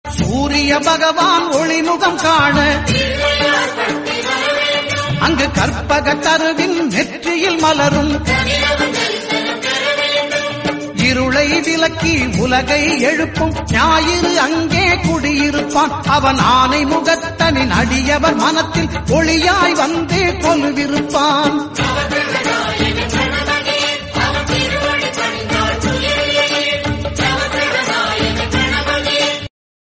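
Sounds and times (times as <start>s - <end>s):
Tamil devotional songs: 0.1s - 29.5s.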